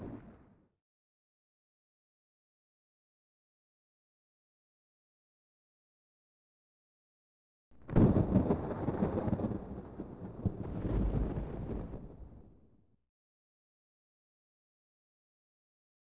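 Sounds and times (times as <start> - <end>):
thunder in a storm: 7.8 - 12.7.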